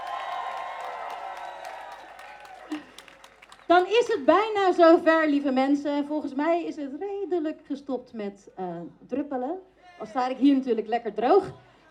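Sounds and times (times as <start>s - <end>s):
crowd at a street demonstration whooping and cheering: 0.0s - 3.6s
crowd at a street demonstration clapping for a speaker: 0.0s - 4.4s
speech: 3.7s - 11.7s.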